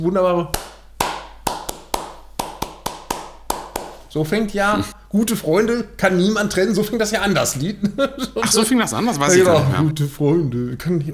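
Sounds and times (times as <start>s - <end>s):
speech: 0.0s - 0.6s, 4.1s - 11.1s
hand clap before recording for sync: 0.4s - 4.4s
laughter: 7.2s - 10.1s.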